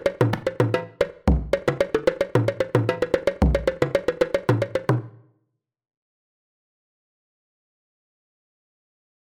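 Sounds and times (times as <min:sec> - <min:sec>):
world percussion: 0:00.0 - 0:05.2.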